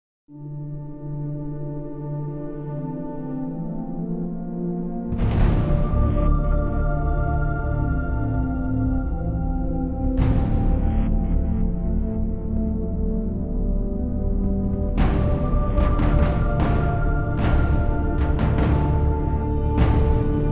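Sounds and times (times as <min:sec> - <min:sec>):
music: 0:00.3 - 0:20.4.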